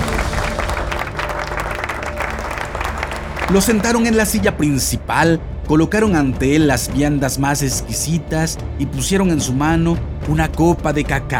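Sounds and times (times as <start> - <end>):
crowd applause: 0.0 - 4.4
speech: 3.5 - 11.3.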